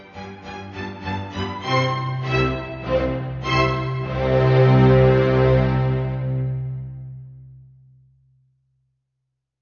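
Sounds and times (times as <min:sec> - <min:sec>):
polka music: 0:00.0 - 0:06.8.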